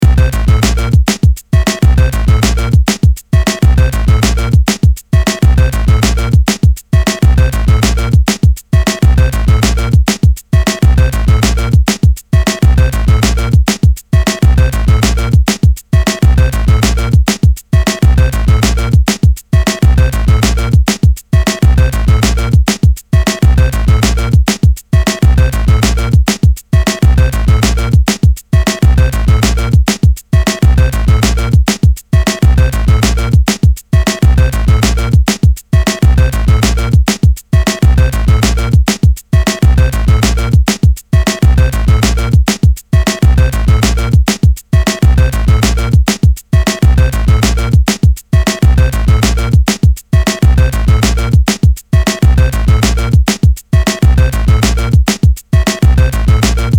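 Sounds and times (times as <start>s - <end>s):
drums: 0.0s - 56.7s.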